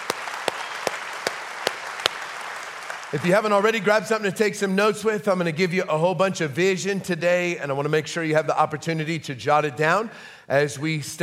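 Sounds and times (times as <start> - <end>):
church congregation applauding during a service: 0.0 - 4.1
speech: 3.1 - 11.2.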